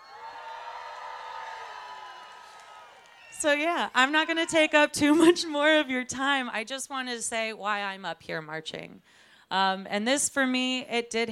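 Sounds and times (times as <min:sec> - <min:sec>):
crowd cheering and whooping: 0:00.0 - 0:05.3
speech: 0:03.4 - 0:11.3.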